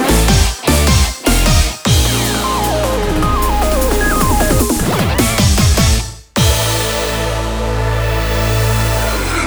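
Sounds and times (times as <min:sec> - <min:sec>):
jingle: 0:00.1 - 0:09.4.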